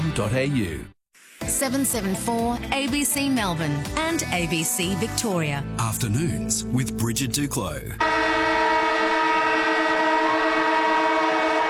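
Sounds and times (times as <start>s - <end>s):
speech: 0.2s - 8.5s
siren going off: 8.0s - 11.6s.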